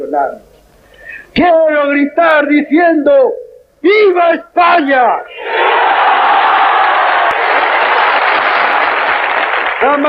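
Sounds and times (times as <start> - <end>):
speech: 0.1 - 0.5, 1.4 - 5.6, 9.8 - 10.0
crowd applause and cheering: 5.3 - 10.0.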